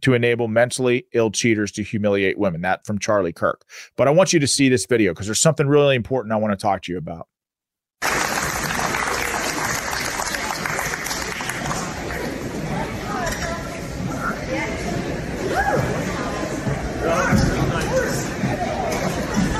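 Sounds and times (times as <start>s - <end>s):
speech: 0.0s - 7.3s
spectators clapping: 8.0s - 12.4s
murmur of voices: 8.6s - 19.5s.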